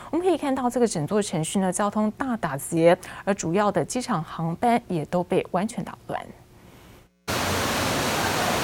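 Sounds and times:
speech: 0.1 - 6.4
muddy floodwater rushing into New York subway station: 7.3 - 8.6.

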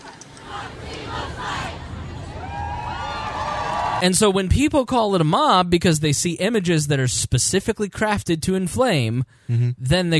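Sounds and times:
large protest crowd shouting and chanting: 0.1 - 4.0
speech: 4.0 - 10.1.

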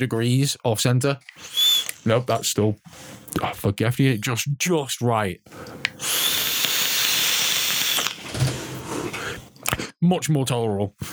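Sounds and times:
speech: 0.0 - 6.4, 10.0 - 11.1
whistling airflow of a vape RDA: 1.4 - 2.0, 6.0 - 8.2.

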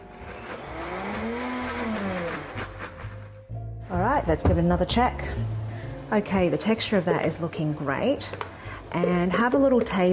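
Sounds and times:
blender blitzing thick pasta sauce: 0.0 - 3.3
speech: 4.2 - 10.1.

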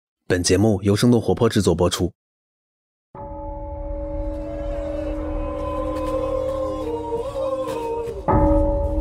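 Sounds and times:
speech: 0.3 - 2.2
droning tones of a Sherpa prayer ceremony at Everest base camp: 4.0 - 9.0.

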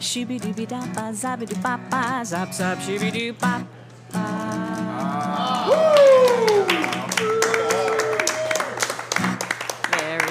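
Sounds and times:
speech: 0.0 - 4.6
person whooping: 5.2 - 8.9
small group clapping: 5.6 - 10.3.

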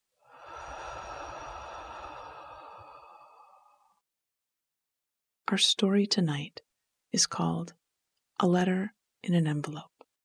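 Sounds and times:
slow breath out during a guided breathing exercise: 0.2 - 4.0
speech: 5.5 - 7.8, 8.4 - 9.9.

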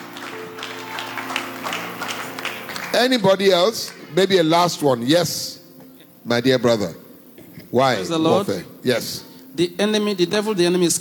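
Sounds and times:
audience clapping: 0.0 - 4.8
speech: 3.0 - 5.6, 6.2 - 7.0, 7.7 - 11.0.

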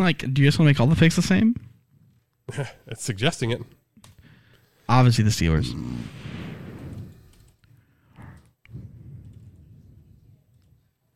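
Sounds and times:
speech: 0.0 - 1.7, 2.5 - 3.8, 4.9 - 6.4
noisy background: 0.0 - 11.1
keyboard typing: 7.3 - 7.7.

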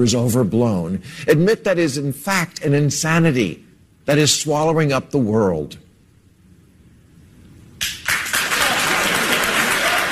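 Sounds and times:
speech: 0.0 - 5.8
studio audience applause: 7.8 - 10.1.

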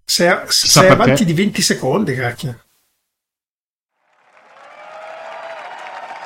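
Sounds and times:
speech: 0.1 - 2.6
audience applauding at WWDC 2019: 4.0 - 6.2.

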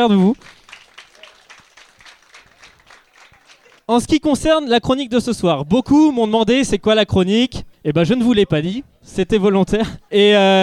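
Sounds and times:
speech: 0.0 - 0.6, 3.9 - 10.6
audience applauding: 0.0 - 3.9.

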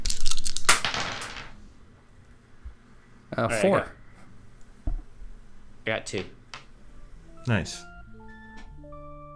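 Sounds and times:
dice rolling on a hard surface: 0.0 - 1.6
speech: 3.4 - 4.0, 5.8 - 6.4, 7.4 - 7.9.

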